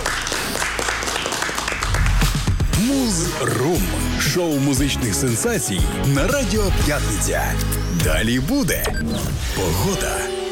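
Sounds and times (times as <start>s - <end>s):
audience applause: 0.0s - 2.6s
speech: 3.1s - 10.4s.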